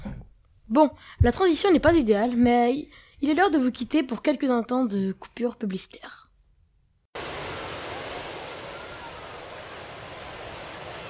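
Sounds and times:
speech: 0:00.7 - 0:06.2
beach waves surf: 0:07.2 - 0:11.0.

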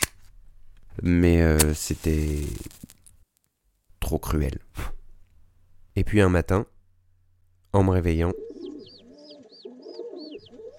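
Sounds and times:
speech: 0:01.0 - 0:03.0, 0:04.1 - 0:05.0, 0:06.0 - 0:06.7, 0:07.7 - 0:08.4
feral pigeon cooing: 0:08.3 - 0:10.7.

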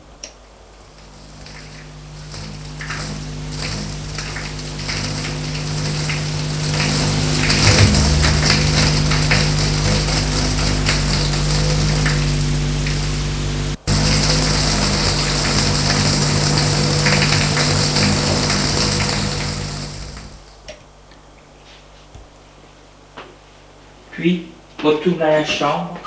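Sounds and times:
shower water running: 0:00.8 - 0:20.6
speech: 0:25.0 - 0:26.0.

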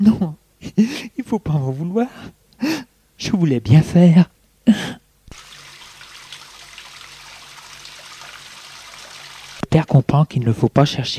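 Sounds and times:
speech: 0:00.0 - 0:05.0, 0:09.9 - 0:11.1
water running from taps: 0:05.3 - 0:09.7.

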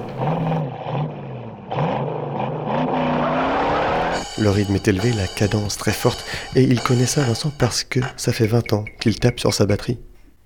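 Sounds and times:
squealing tires from a film car chase: 0:00.0 - 0:05.0
car engine roar from a film car chase: 0:00.0 - 0:05.3
speech: 0:04.4 - 0:10.1.

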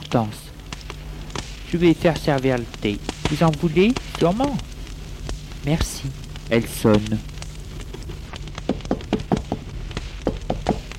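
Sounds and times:
speech: 0:00.1 - 0:00.5, 0:01.7 - 0:04.7, 0:05.6 - 0:07.3
knocking on a door: 0:08.7 - 0:09.6, 0:10.2 - 0:10.8.

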